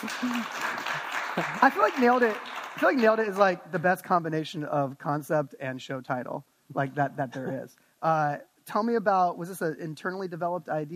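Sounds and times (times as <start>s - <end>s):
speech: 0.0s - 0.8s, 1.4s - 10.9s
audience applause: 0.0s - 3.6s.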